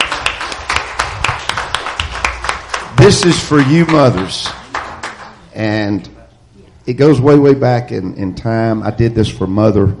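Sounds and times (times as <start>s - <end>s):
audience hand clapping honoring mothers: 0.0s - 5.4s
speech: 3.0s - 4.6s, 5.6s - 6.1s, 6.9s - 9.9s.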